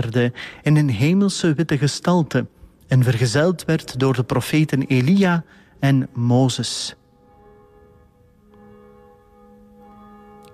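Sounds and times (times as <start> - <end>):
speech: 0.0 - 7.0
church bells ringing in a bell tower: 4.5 - 10.5.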